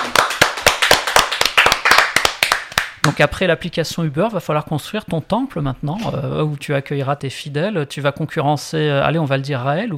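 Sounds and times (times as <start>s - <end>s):
hands clapping: 0.0s - 3.2s
speech: 3.1s - 9.9s.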